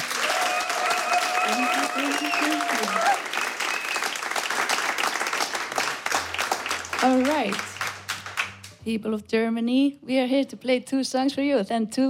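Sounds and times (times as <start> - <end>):
studio audience clapping for a band in a Berlin radio studio: 0.0 - 8.8
speech: 1.5 - 3.5, 7.0 - 7.7, 8.8 - 12.0.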